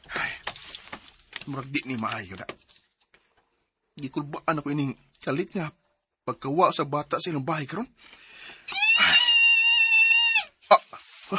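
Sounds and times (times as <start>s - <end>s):
speech: 1.5s - 2.6s, 4.0s - 8.2s
mother screaming in a long wailing cry: 8.7s - 10.5s.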